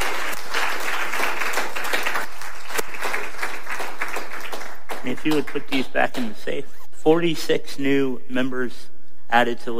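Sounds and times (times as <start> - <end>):
audience applauding with loud hand claps: 0.0 - 6.4
speech: 5.1 - 9.7.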